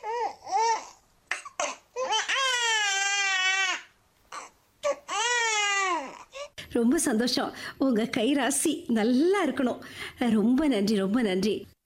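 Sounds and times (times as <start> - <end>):
newborn baby girl crying just after a normal birth: 0.0 - 6.6
speech: 6.8 - 11.8.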